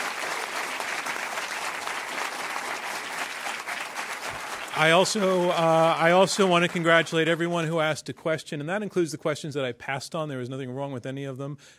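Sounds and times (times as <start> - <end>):
audience applause: 0.0 - 7.6
speech: 4.8 - 11.7.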